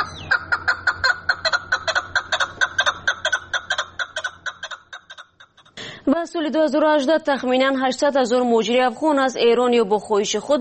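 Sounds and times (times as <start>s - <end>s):
partridge calling: 0.0s - 5.6s
speech: 6.3s - 10.5s.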